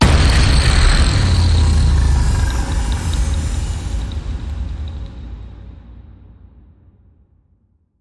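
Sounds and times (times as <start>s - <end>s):
big hit: 0.0s - 5.7s.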